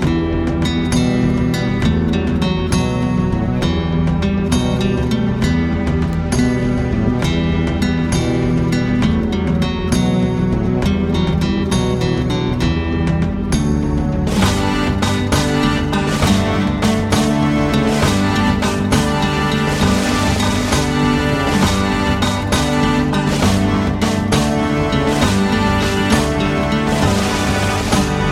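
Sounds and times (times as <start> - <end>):
drums: 0.0 - 28.2
bagpipes: 14.3 - 28.2.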